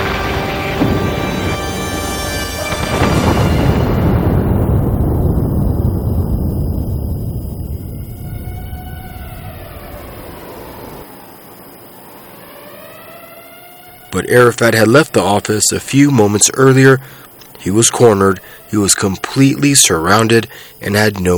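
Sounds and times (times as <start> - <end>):
missile striking an office and exploding: 0.0 - 11.0
speech: 14.3 - 21.3.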